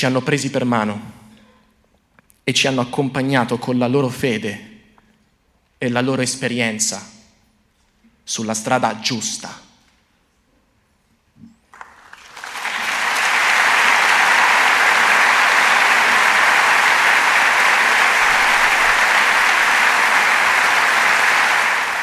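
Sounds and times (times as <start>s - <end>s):
speech: 0.0s - 1.2s, 2.4s - 4.7s, 5.8s - 7.2s, 8.3s - 9.7s
large theatre audience applause: 11.7s - 22.0s.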